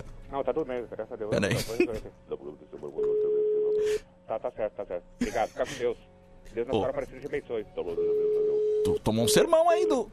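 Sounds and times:
speech: 0.3 - 10.1
telephone tone after a dropped call: 3.0 - 3.8, 7.9 - 10.1.

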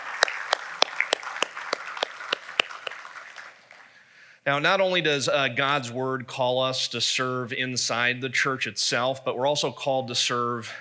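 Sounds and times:
audience scattered handclaps: 0.0 - 3.9
speech: 4.5 - 10.8.

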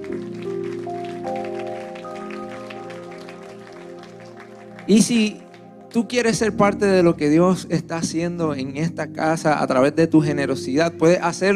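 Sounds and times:
audience applause: 0.0 - 6.2
sustained keyboard chords: 0.0 - 11.5
speech: 4.9 - 5.4, 6.0 - 11.5.

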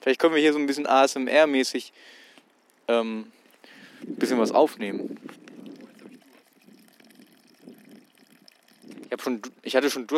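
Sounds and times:
speech: 0.0 - 2.2, 2.9 - 3.4, 4.0 - 5.4, 9.1 - 10.1
water trickling out of a field: 4.8 - 10.1.

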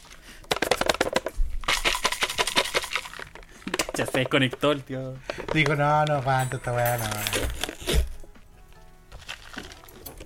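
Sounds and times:
crunching bites into fried chicken: 0.0 - 3.9, 9.1 - 10.2
speech: 4.0 - 8.0.

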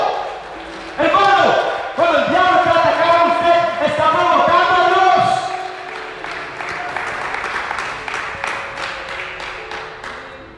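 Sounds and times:
audience applause: 0.0 - 10.5.

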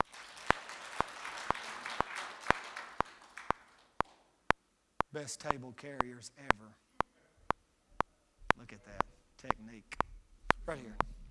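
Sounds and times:
audience hand clapping: 0.0 - 4.3
speech: 5.2 - 6.8, 8.7 - 10.0, 10.7 - 11.1.

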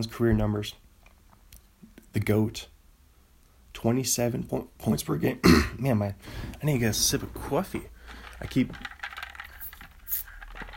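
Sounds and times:
speech: 0.0 - 0.8, 2.1 - 2.7, 3.8 - 9.0
ice rattling in a cup: 8.0 - 10.7.

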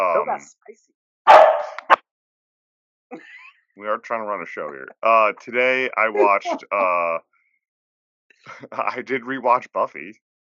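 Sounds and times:
speech: 0.0 - 1.5, 3.1 - 7.3, 8.4 - 10.3
dog barking: 1.3 - 2.0
laughter: 3.2 - 7.2, 8.5 - 10.1.

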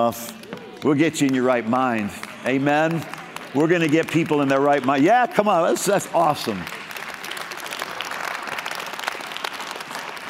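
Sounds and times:
speech: 0.0 - 6.8
audience clapping: 0.0 - 10.2.

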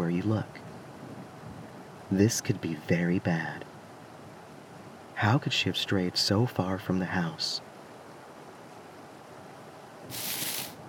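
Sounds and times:
speech: 0.2 - 0.6, 2.1 - 3.7, 5.2 - 7.7, 10.1 - 10.4
rustling noise: 10.0 - 10.8.

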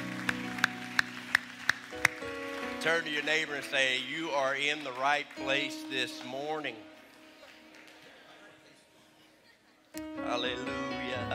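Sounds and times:
audience clapping: 0.0 - 8.8
speech: 2.8 - 6.9, 10.3 - 11.3.

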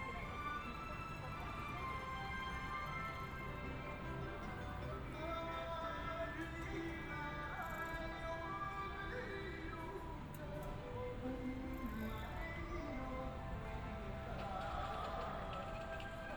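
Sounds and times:
crowd murmur in Shibuya, Tokyo: 0.0 - 16.3.

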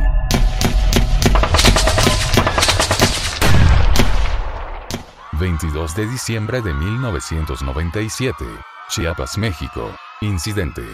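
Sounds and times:
loud sustained gunfire like automatic fire: 0.3 - 5.1
speech: 5.6 - 10.9.

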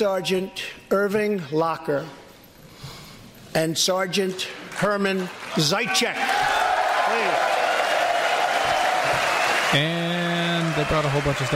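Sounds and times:
speech: 0.0 - 2.2, 3.6 - 6.5, 9.7 - 10.0, 10.8 - 11.5
crowd applauding: 4.6 - 11.5.

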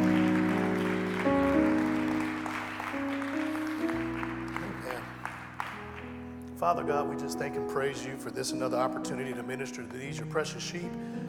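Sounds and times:
audience clapping hands: 0.0 - 6.5
speech: 6.6 - 11.2.

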